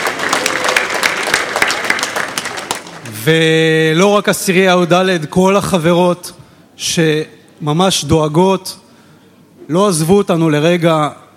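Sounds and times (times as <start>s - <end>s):
audience applause: 0.0s - 3.2s
speech: 3.2s - 8.8s, 9.7s - 11.2s.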